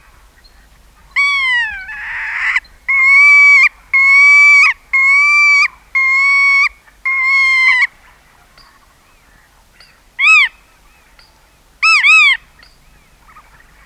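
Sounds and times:
black-tailed godwit nasal calls: 1.2s - 7.9s, 11.8s - 12.4s.

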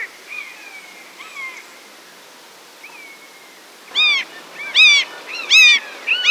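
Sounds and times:
buzzard mewing calls: 3.9s - 6.2s.

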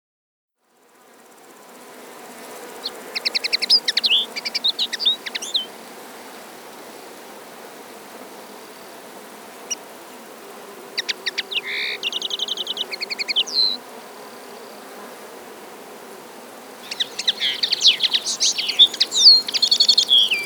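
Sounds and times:
common linnet song with twittering notes and rapid trills: 2.8s - 5.7s, 11.0s - 13.8s, 16.8s - 20.4s.

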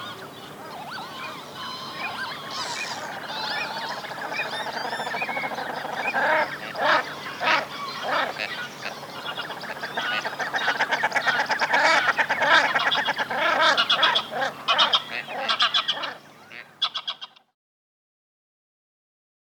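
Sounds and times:
shelduck: 0.7s - 17.4s.

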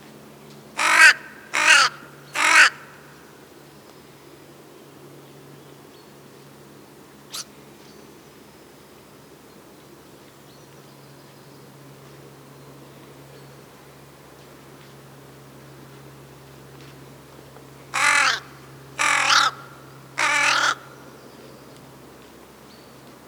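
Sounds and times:
crow cawing: 0.8s - 3.2s, 17.9s - 21.1s.

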